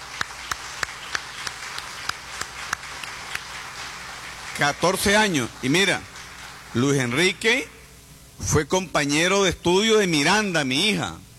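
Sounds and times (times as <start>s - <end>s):
audience applause: 0.0s - 7.2s
speech: 4.6s - 6.1s, 6.7s - 7.8s, 8.4s - 11.3s.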